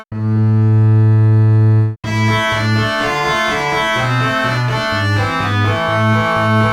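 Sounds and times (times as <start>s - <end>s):
contrabass: 0.1s - 6.7s.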